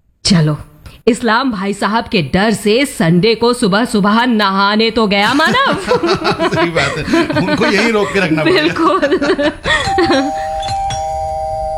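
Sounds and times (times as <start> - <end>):
speech: 0.3 - 10.5
laughter: 5.2 - 10.7
electronic doorbell ding-dong chime: 9.7 - 11.7.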